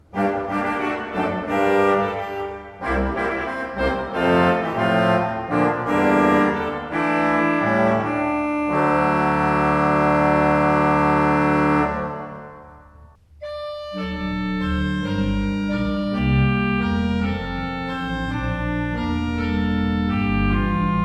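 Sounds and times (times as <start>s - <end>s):
used Beckerath pipe organ: 0.0s - 21.0s.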